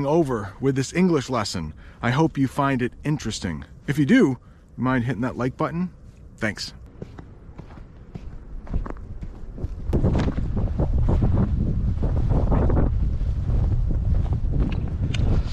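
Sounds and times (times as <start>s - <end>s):
speech: 0.0s - 7.2s
strong wind blowing on microphone: 8.6s - 15.5s.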